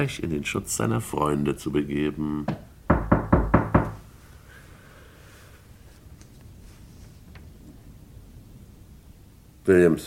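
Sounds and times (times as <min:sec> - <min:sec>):
speech: 0:00.0 - 0:02.6, 0:09.7 - 0:10.0
firm knocks on a door: 0:02.5 - 0:04.0.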